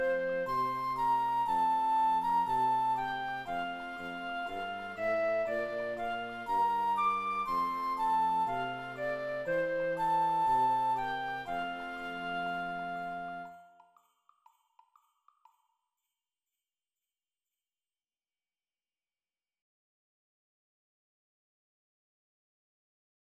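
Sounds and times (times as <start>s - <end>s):
flute: 0.0s - 14.0s.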